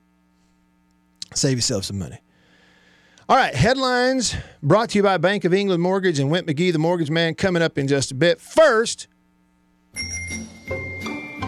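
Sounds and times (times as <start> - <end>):
speech: 1.3 - 2.3, 3.3 - 9.1, 10.0 - 10.2
bicycle bell ringing: 10.0 - 11.3.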